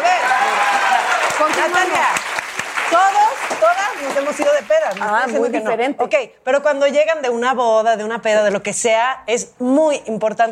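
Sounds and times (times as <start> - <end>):
applause: 0.0 - 5.5
speech: 1.5 - 2.3, 2.9 - 10.5.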